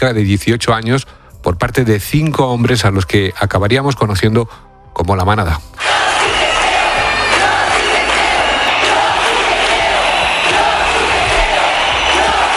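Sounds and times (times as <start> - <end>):
speech: 0.0 - 5.9
street protest crowd shouting and chanting: 5.8 - 12.5.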